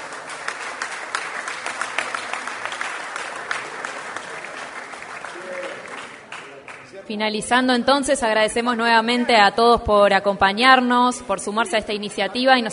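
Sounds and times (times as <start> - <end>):
audience applause: 0.0 - 7.1
speech: 7.1 - 12.7.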